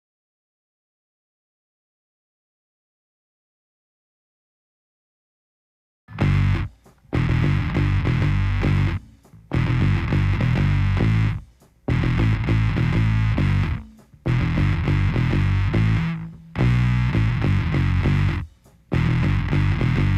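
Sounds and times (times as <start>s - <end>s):
rhythm: 6.1s - 20.1s.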